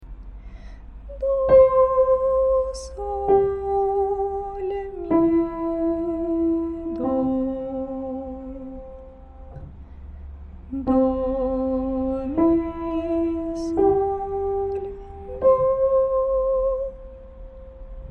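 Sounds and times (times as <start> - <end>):
person singing a solfege tune: 1.1 - 9.0, 10.7 - 17.2.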